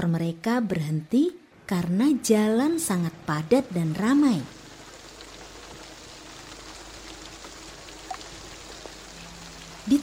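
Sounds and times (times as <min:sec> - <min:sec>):
speech: 0:00.0 - 0:04.6
sudden rain falling during a journey: 0:03.8 - 0:10.0
water drips: 0:04.5 - 0:10.0.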